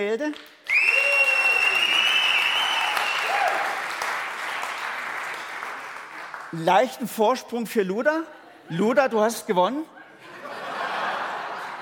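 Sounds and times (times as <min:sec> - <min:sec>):
speech: 0:00.0 - 0:00.6, 0:06.5 - 0:10.0
audience applause: 0:00.4 - 0:06.6
whistles and cheers: 0:00.7 - 0:04.8
laughter: 0:10.0 - 0:11.8.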